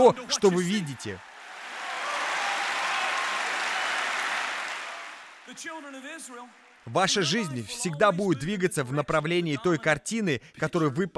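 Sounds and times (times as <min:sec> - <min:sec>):
speech: 0:00.0 - 0:01.3, 0:05.6 - 0:11.1
audience clapping hands: 0:00.0 - 0:07.4.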